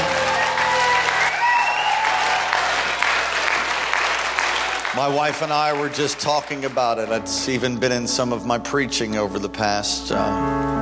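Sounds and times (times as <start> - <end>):
audience clapping hands: 0.0 - 8.0
speech: 5.0 - 10.8.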